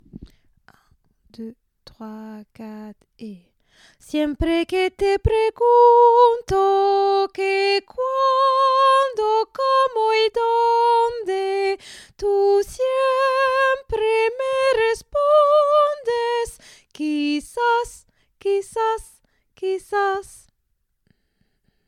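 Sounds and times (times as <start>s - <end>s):
soprano singing: 4.0s - 20.5s.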